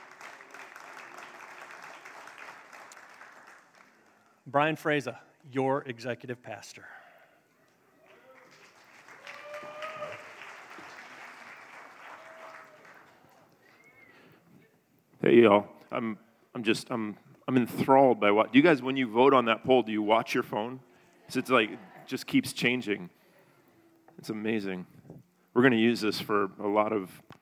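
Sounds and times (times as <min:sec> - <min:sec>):
audience clapping and applauding: 0:00.0 - 0:04.5, 0:08.0 - 0:14.1
speech: 0:04.5 - 0:07.0, 0:15.3 - 0:23.2, 0:24.2 - 0:25.0, 0:25.6 - 0:27.4.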